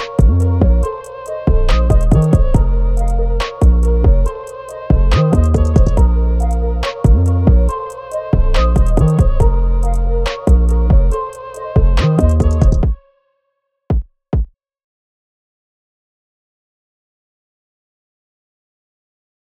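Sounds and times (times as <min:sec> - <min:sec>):
instrumental beat: 0:00.0 - 0:13.0, 0:13.9 - 0:14.5.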